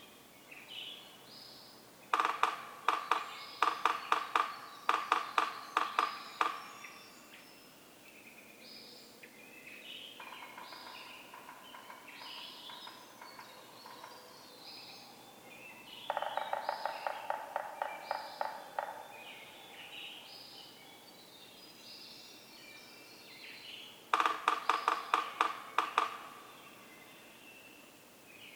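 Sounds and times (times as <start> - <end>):
songbirds chirping: 0.0 - 28.5
Yellow-bellied Sapsucker drumming: 2.1 - 6.9, 10.2 - 14.3, 16.1 - 19.6, 24.1 - 26.7.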